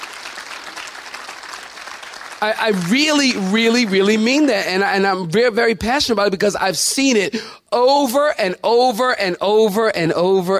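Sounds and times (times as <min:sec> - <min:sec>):
hand clapping: 0:00.0 - 0:04.3
speech: 0:02.4 - 0:10.5.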